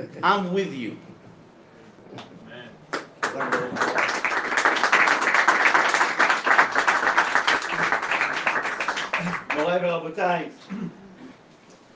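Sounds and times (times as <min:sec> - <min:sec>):
speech: 0:00.1 - 0:01.1, 0:02.1 - 0:02.4, 0:03.3 - 0:04.2, 0:09.6 - 0:11.0
audience applause: 0:02.9 - 0:09.9.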